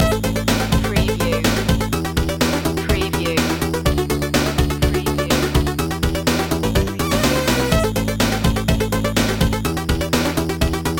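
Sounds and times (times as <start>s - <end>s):
retro video game music loop: 0.0s - 10.9s.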